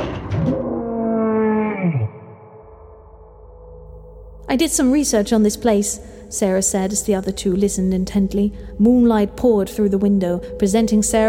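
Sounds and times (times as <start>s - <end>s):
monster howling beyond a door: 0.5s - 2.4s
speech: 4.5s - 11.2s.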